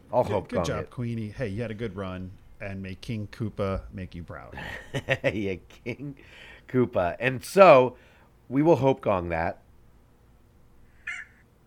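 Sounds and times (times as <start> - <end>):
low steady hum: 0.0 - 11.6
speech: 0.1 - 9.6
rooster crow: 11.0 - 11.4.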